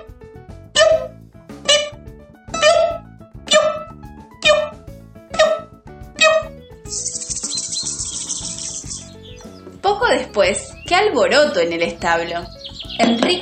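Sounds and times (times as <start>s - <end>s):
high-pitched trill: 2.6s - 9.2s
chorus of small birds chirping outside a house door: 4.4s - 13.4s
speech: 6.9s - 7.1s, 9.9s - 13.4s.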